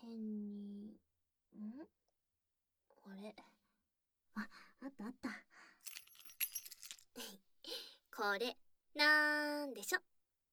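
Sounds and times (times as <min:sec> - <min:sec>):
speech: 0:00.0 - 0:00.4, 0:03.2 - 0:03.5, 0:04.4 - 0:05.4, 0:08.2 - 0:10.1
keys jingling: 0:05.8 - 0:07.0.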